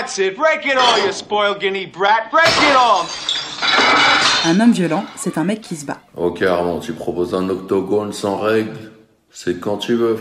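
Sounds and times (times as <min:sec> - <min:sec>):
speech: 0:00.1 - 0:10.1
ceramic plate smashing: 0:00.8 - 0:01.3, 0:02.4 - 0:06.1.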